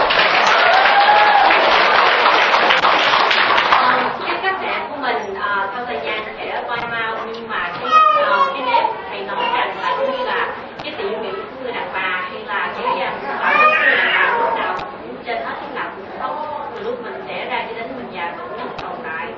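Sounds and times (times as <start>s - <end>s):
crowd applauding: 0.0s - 4.5s
lively chatter with children: 2.8s - 19.3s.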